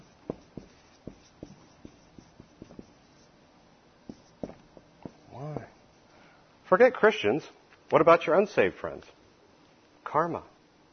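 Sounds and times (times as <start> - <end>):
pen scratching and tapping while writing: 0.0 - 3.3, 4.1 - 5.7
speech: 6.7 - 9.2, 10.1 - 10.5.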